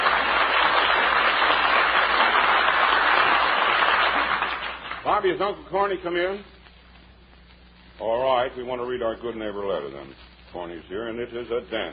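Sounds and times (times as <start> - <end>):
audience cheering and applause: 0.0 - 5.0
speech: 5.2 - 6.5, 8.0 - 11.9.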